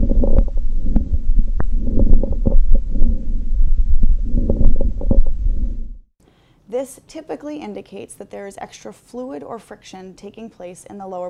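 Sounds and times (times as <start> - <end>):
lung crackles through stethoscope: 0.0 - 5.3
speech: 6.8 - 11.2.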